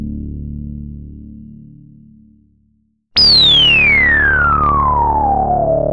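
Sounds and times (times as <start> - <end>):
resonance: 3.2 - 5.9.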